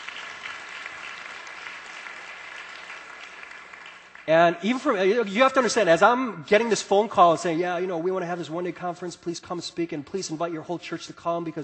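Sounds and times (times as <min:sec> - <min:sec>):
church congregation applauding as a clap offering to the Lord: 0:00.0 - 0:05.7
speech: 0:04.3 - 0:11.6.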